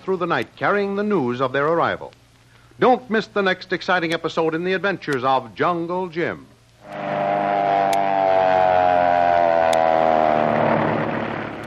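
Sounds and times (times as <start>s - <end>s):
speech: 0.0s - 2.2s, 2.8s - 7.1s
airplane making a power dive: 6.8s - 11.6s.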